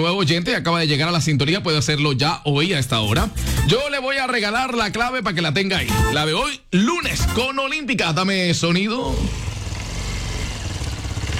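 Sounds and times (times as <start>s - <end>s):
speech: 0.0s - 9.5s
engine running at steady revs: 9.1s - 11.3s.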